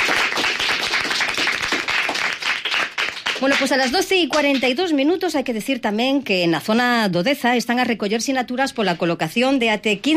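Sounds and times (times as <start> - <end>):
schoolchildren applauding: 0.0 - 3.7
speech: 3.4 - 10.1.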